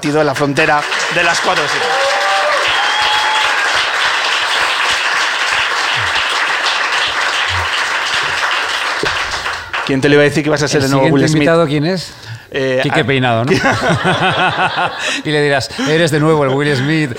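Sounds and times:
speech: 0.0s - 2.2s, 9.9s - 17.1s
crowd audience ovation: 0.6s - 10.1s
laughter: 13.4s - 17.1s.

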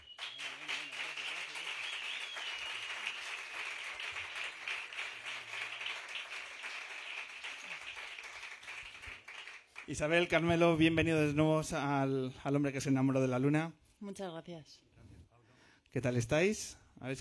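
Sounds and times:
audience applause: 0.0s - 10.4s
speech: 9.9s - 14.9s, 15.9s - 17.1s.

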